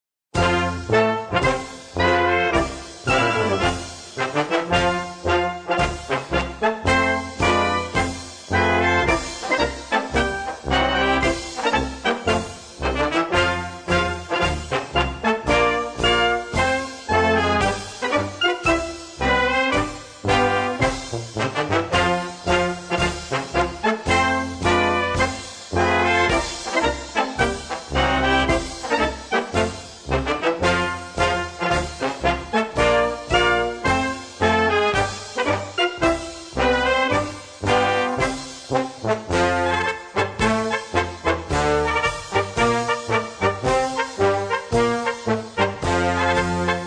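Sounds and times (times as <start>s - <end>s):
march music: 0.4s - 46.8s.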